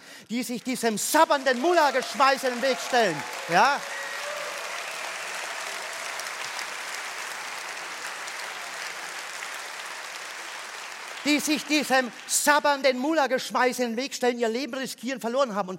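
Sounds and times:
speech: 0.3 - 4.0, 11.2 - 15.7
audience applause: 1.0 - 12.9.

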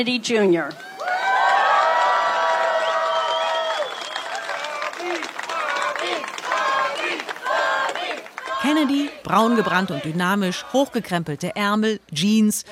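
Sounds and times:
speech: 0.0 - 0.9, 8.6 - 12.7
high whoops from a crowd at an Iowa fair: 0.8 - 5.3
crowd at an Iowa fair cheering and applauding to greet Robert F. Kennedy Jr.: 0.8 - 10.2.

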